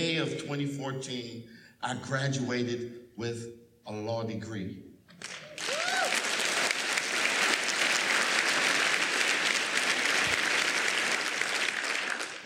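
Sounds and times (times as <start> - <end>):
speech: 0.0 - 5.4
audience applause: 5.2 - 12.4
faint whistles and cheers: 5.4 - 6.3.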